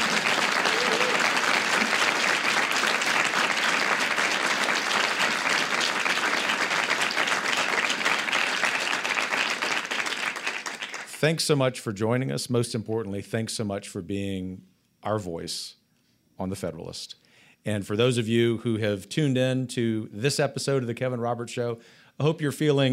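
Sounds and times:
live theater audience applause: 0.0 - 11.2
speech: 11.2 - 15.8, 16.4 - 22.9.

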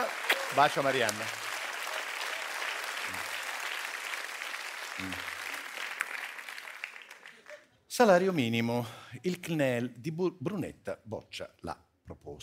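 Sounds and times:
studio audience applause: 0.0 - 7.6
speech: 0.5 - 1.4, 5.0 - 5.3, 8.0 - 12.4.

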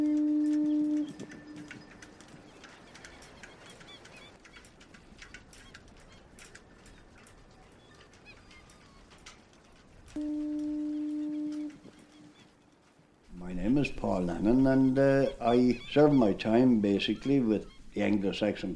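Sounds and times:
foghorn blast near Church Bay and Myrtleville: 0.0 - 1.7, 10.1 - 11.9
bird calls: 0.0 - 18.7
speech: 13.8 - 18.7.

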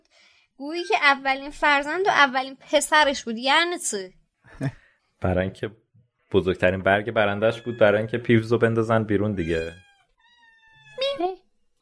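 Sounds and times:
speech: 0.6 - 9.8
cat meowing: 7.4 - 8.4, 9.2 - 11.4.

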